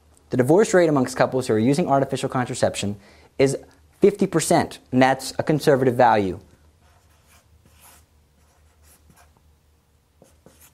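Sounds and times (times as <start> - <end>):
speech: 0.3 - 6.5
pen scratching as someone writes by hand and draws a percent sign: 6.8 - 9.4, 10.2 - 10.7.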